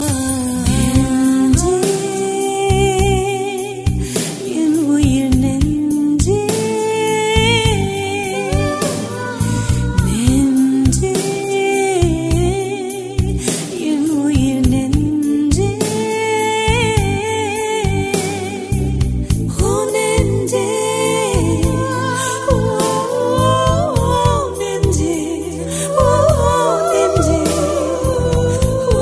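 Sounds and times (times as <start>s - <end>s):
valentine background music: 0.0s - 29.0s.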